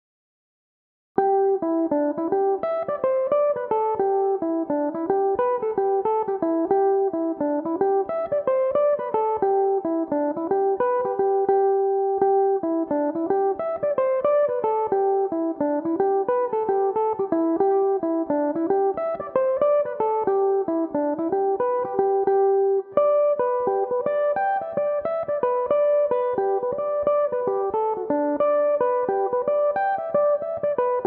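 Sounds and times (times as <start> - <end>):
mandolin playing in G major: 1.3 - 31.0.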